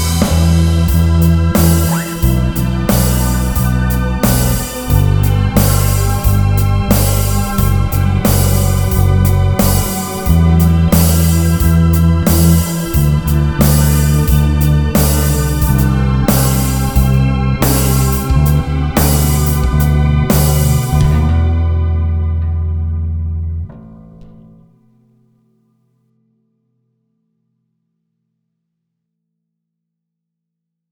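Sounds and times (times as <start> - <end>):
bass line: 0.0 - 24.6.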